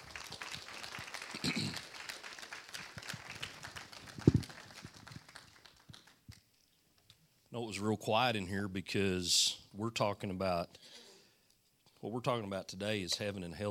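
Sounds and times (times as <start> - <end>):
audience applause: 0.0 - 6.3
speech: 7.6 - 11.0, 12.0 - 13.6.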